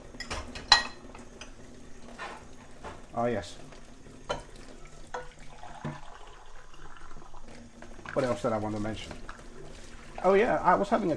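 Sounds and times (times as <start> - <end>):
dishes clinking while being washed up: 0.1 - 1.3, 4.3 - 6.1
speech: 3.2 - 3.7, 8.2 - 9.2, 10.2 - 11.1.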